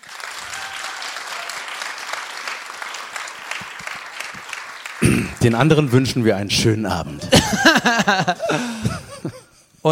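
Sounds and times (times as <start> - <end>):
audience clapping: 0.0 - 6.2
speech: 5.4 - 9.9
laughter: 7.2 - 9.6.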